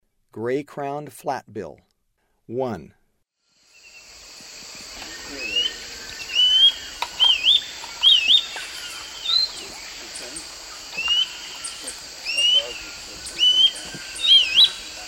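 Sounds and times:
gray-crowned flatbill upward-slurred whistled notes in South American eastern lowlands: 0:05.0 - 0:10.0, 0:11.0 - 0:15.0.

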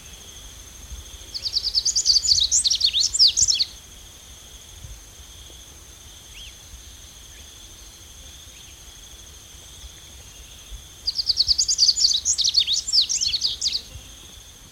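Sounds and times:
yellow-bellied seedeater song in Ecuador: 0:01.3 - 0:03.8, 0:10.3 - 0:13.9.

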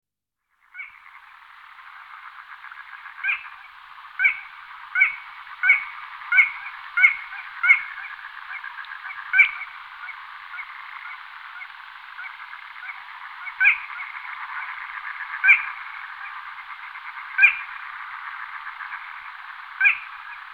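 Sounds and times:
Little crake calling: 0:00.6 - 0:20.5.

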